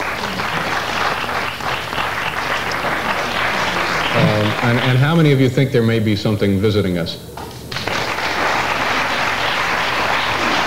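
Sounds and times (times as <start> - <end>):
audience applause: 0.0 - 5.4, 7.7 - 10.6
speech: 4.5 - 7.4.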